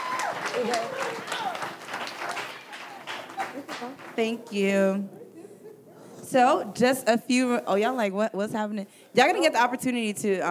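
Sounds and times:
audience applause: 0.0s - 5.8s
laughter: 0.0s - 10.4s
voices cheering: 0.0s - 10.4s
speech: 0.6s - 1.6s, 3.8s - 5.2s, 6.3s - 10.4s.

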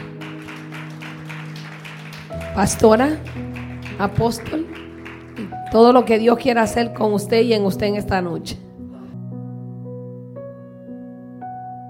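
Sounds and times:
applause: 0.0s - 6.5s
speech: 2.3s - 4.8s, 5.7s - 8.6s.

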